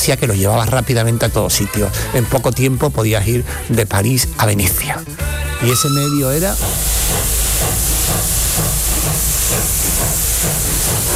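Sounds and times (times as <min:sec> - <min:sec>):
speech: 0:00.0 - 0:07.9
steam hissing from a train arriving at a station: 0:05.6 - 0:11.1.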